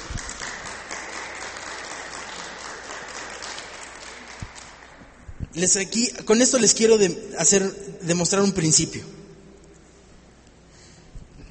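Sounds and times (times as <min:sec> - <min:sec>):
audience applauding: 0:00.0 - 0:05.2
speech: 0:05.6 - 0:09.2.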